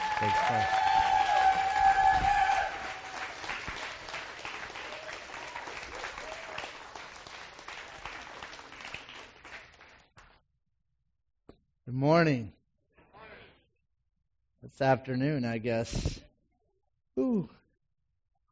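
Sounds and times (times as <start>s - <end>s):
audience applause: 0.0s - 10.0s
speech: 0.2s - 0.9s, 12.0s - 12.5s, 14.8s - 16.2s.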